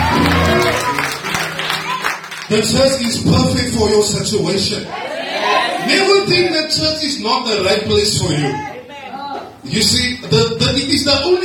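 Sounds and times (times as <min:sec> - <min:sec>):
audience clapping hands: 0:00.0 - 0:03.4
speech: 0:02.5 - 0:08.8, 0:09.6 - 0:11.4.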